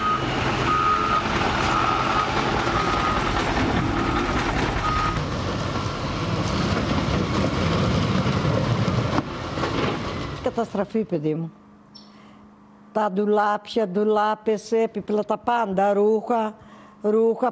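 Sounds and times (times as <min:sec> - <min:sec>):
construction machinery reversing beeps: 0:00.0 - 0:05.2
heavy construction machinery working: 0:00.0 - 0:11.1
speech: 0:10.6 - 0:11.6, 0:13.0 - 0:17.5.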